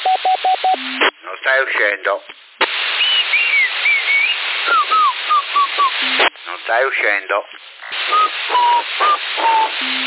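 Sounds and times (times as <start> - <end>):
CB radio static hiss: 0.0 - 10.0
speech: 1.5 - 2.4, 6.5 - 10.0
whistled tune through a CB radio in Sassari: 2.9 - 6.3, 8.0 - 10.0.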